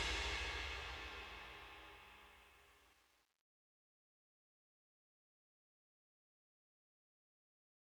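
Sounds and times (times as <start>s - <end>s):
Yamaha MIDI music: 0.0s - 1.5s.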